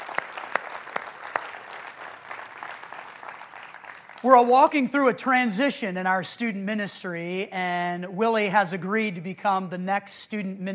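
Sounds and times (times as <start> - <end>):
church congregation clapping to welcome its new student ministry director: 0.0 - 5.2
speech: 4.2 - 10.7.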